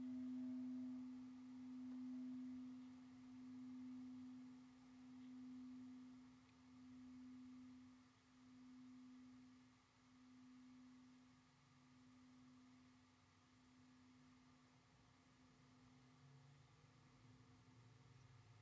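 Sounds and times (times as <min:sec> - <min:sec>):
Tibetan singing bowl ringing: 0:00.0 - 0:13.2.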